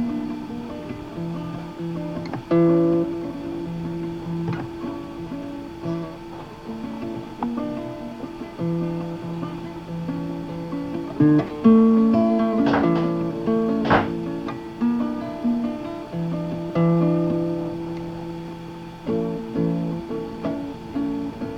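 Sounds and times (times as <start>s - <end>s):
guitar outside: 0.0s - 21.5s.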